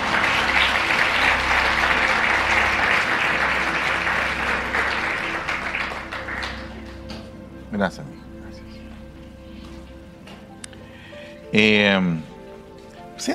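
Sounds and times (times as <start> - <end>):
audience applause: 0.0 - 7.3
speech: 7.8 - 8.2, 11.5 - 12.3.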